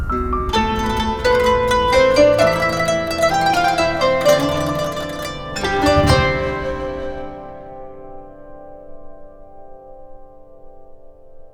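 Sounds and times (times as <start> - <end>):
oriental instruments playing: 0.1 - 8.5.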